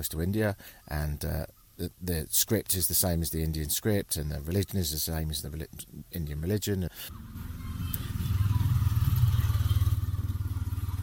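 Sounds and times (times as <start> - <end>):
speech: 0.0 - 7.4
tuk-tuk engine on a Sri Lankan street: 7.1 - 11.0.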